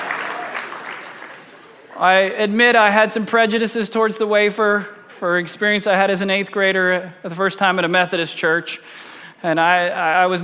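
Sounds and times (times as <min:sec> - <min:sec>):
applause: 0:00.0 - 0:02.0
speech: 0:02.0 - 0:10.4.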